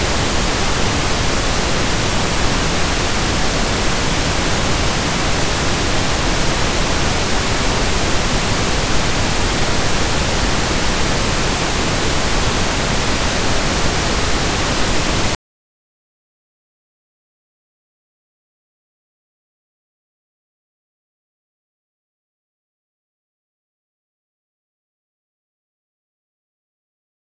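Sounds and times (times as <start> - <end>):
pink noise: 0.0 - 15.4.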